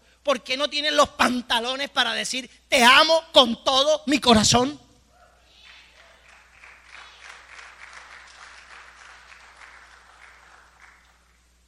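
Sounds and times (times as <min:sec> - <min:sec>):
speech: 0:00.2 - 0:04.8
audience applause: 0:05.7 - 0:11.4.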